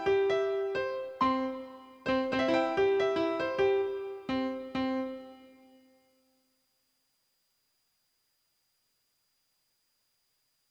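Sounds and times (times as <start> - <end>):
sad piano instrumental: 0.0 - 5.8.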